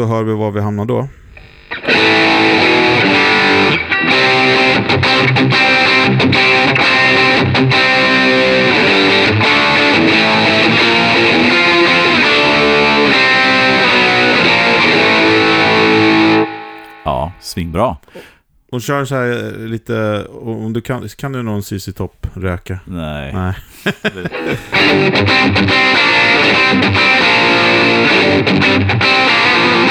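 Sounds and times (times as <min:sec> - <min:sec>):
speech: 0:00.0 - 0:01.2, 0:05.2 - 0:06.4, 0:07.1 - 0:08.4, 0:17.5 - 0:29.2
distorted electric guitar with gain lowered: 0:01.3 - 0:17.0, 0:24.3 - 0:29.8
laughter: 0:23.3 - 0:25.3.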